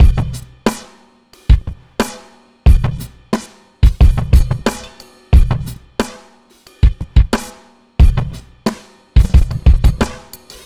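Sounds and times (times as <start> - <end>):
downbeat dance groove: 0.0 - 0.8, 3.8 - 6.1, 6.8 - 10.6.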